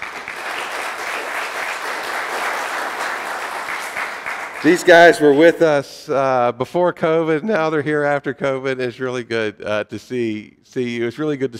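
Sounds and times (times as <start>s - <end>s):
audience applause: 0.0s - 5.5s
speech: 4.6s - 11.5s.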